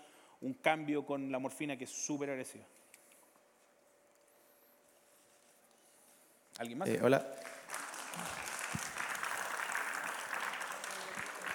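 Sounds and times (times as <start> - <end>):
speech: 0.4 - 2.8, 6.6 - 7.5
audience applause: 7.4 - 11.5.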